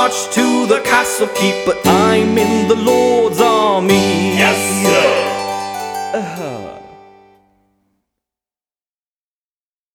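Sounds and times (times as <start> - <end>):
medieval style music: 0.0 - 7.4.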